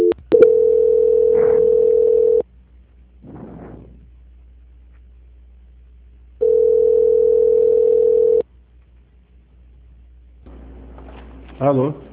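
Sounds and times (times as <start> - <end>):
long telephone tones while a call is being transferred: 0.0 - 2.4, 6.4 - 8.4.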